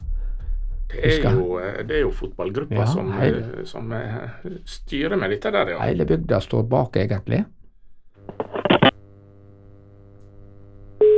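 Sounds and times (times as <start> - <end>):
speech: 0.9 - 7.6
low steady hum over a phone line: 1.0 - 1.5, 8.2 - 11.1.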